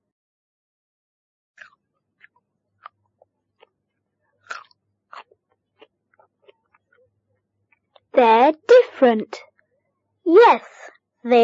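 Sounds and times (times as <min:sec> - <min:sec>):
bites and chewing of apples: 0:04.4 - 0:05.3
speech: 0:08.2 - 0:09.5, 0:10.3 - 0:11.4.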